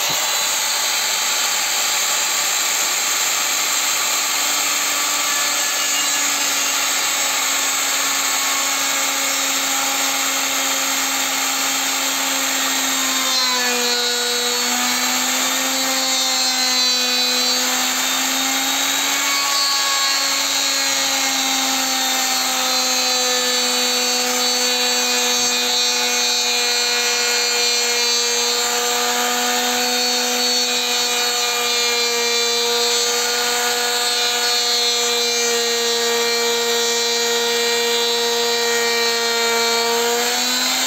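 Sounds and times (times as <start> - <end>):
power tool whine while making a wooden stand for a marble run: 0.0 - 40.8.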